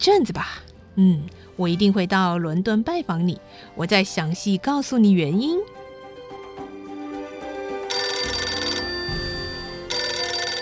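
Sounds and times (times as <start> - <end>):
speech: 0.0 - 5.8
telephone bell ringing: 7.9 - 10.6.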